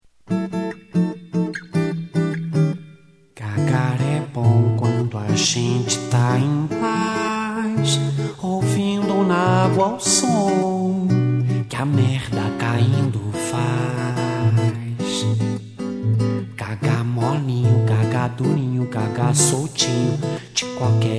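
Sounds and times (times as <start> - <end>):
music for the bathroom: 0.1 - 21.1.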